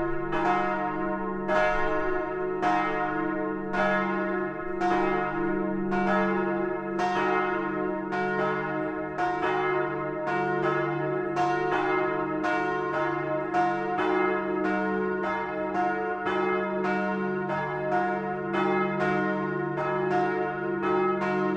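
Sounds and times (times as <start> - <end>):
field church bells ringing: 0.0 - 21.5.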